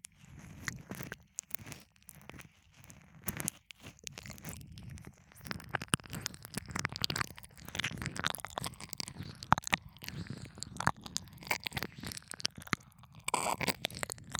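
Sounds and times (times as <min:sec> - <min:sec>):
ASMR ear licking in the left ear: 0:04.1 - 0:14.3.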